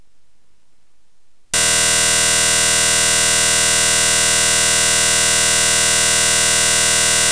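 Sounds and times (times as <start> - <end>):
noise: 1.6 - 7.3.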